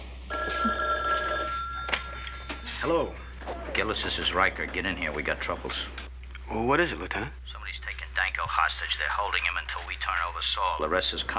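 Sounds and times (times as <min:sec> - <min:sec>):
telephone ringing: 0:00.3 - 0:05.1
speech: 0:02.8 - 0:03.2, 0:03.8 - 0:11.3.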